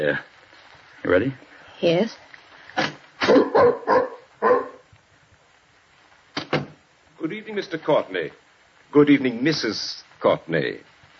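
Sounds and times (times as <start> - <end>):
speech: 0.0 - 0.3, 1.0 - 4.6, 7.2 - 10.9
dog barking: 3.2 - 4.8.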